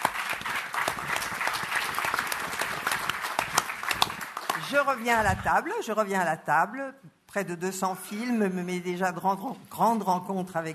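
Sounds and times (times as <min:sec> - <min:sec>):
audience applause for the film crew: 0:00.0 - 0:05.3
speech: 0:04.7 - 0:10.7.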